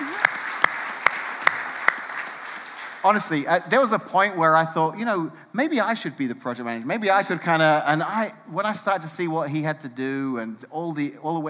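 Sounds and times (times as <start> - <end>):
audience applause: 0.0 - 3.4
speech: 3.0 - 11.4.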